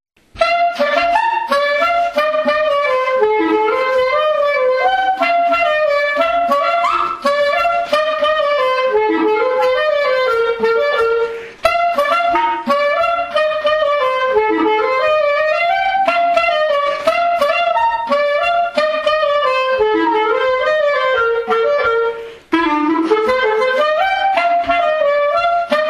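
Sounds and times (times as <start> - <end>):
polka music: 0.2 - 25.8.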